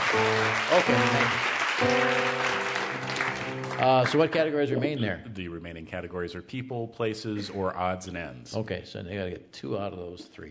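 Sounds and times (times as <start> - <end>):
game show studio audience applauding: 0.0 - 5.0
speech: 0.1 - 2.6, 3.8 - 10.4.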